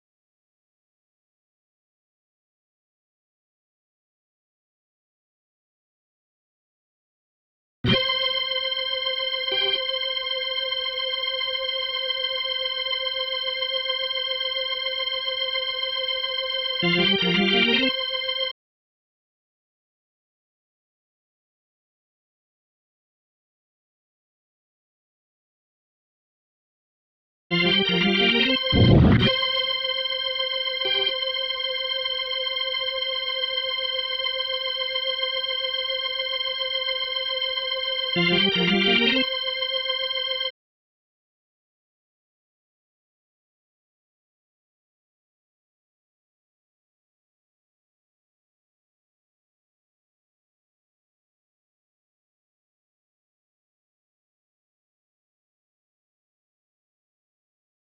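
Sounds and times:
organ: 7.9s - 18.5s, 27.5s - 40.5s.

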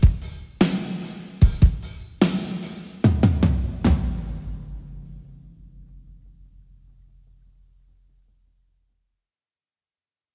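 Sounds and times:
drums: 0.0s - 7.1s.

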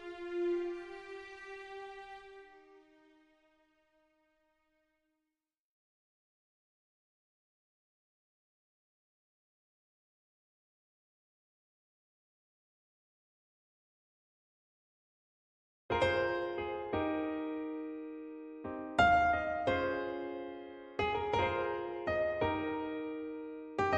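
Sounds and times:
piano: 0.0s - 3.4s, 15.9s - 23.9s.

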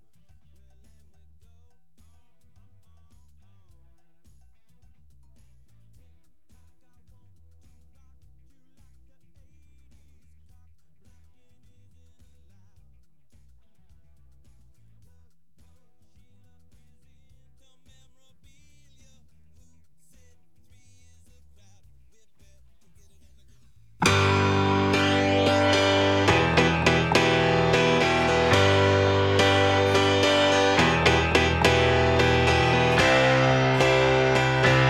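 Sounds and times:
keyboard playing: 24.0s - 34.8s.

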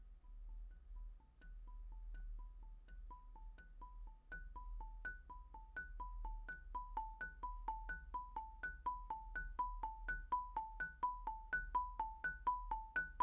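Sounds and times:
marimba: 0.3s - 13.2s.

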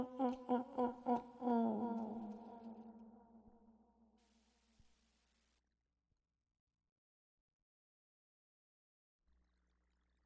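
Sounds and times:
person singing: 0.0s - 3.4s.

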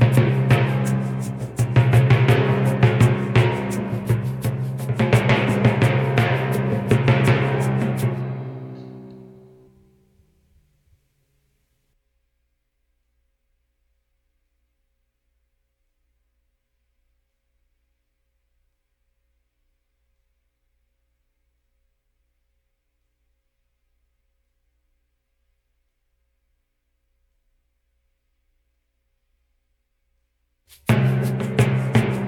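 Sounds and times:
drums: 0.0s - 9.4s, 30.7s - 32.2s.

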